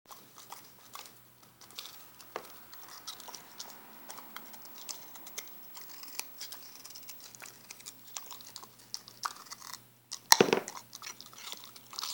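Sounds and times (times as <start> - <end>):
dog chewing: 0.1 - 12.1.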